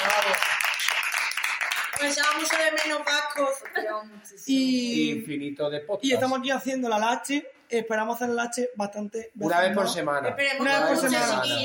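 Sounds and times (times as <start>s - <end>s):
applause: 0.0s - 3.8s
speech: 2.0s - 11.6s.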